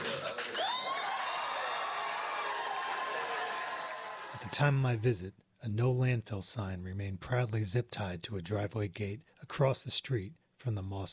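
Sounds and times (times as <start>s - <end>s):
applause: 0.0s - 4.5s
room full of people cheering: 0.0s - 5.0s
speech: 4.5s - 11.1s.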